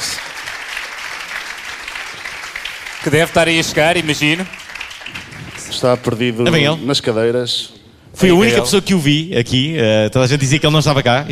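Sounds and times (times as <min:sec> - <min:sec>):
audience applause at an awards ceremony: 0:00.0 - 0:06.4
speech: 0:03.0 - 0:04.6, 0:05.8 - 0:11.2.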